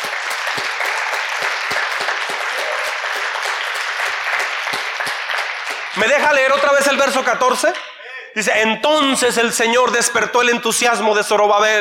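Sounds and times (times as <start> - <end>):
audience applause: 0.0 - 7.2
speech: 6.0 - 11.7.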